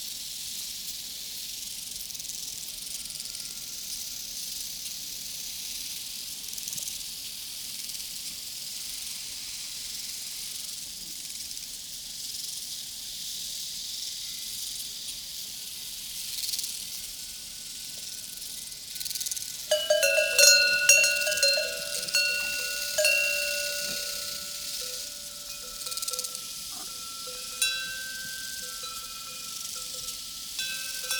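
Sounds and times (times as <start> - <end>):
cowbells on a prairie: 19.0 - 31.1
crickets chirping on a prairie: 19.7 - 31.1.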